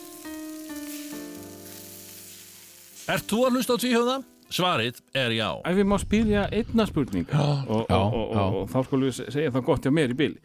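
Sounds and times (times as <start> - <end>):
sizzling grill over glowing coals: 0.0 - 5.1
speech: 3.1 - 10.4.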